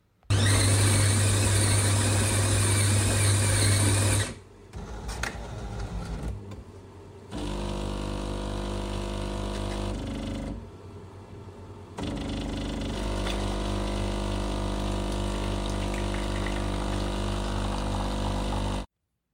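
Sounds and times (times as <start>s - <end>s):
coffee machine brewing: 0.3s - 6.2s, 7.3s - 10.7s, 12.0s - 18.9s.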